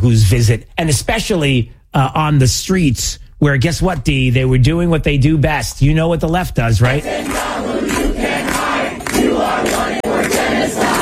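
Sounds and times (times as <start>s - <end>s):
speech: 0.0s - 8.7s
street protesters chanting and shouting: 6.8s - 11.0s.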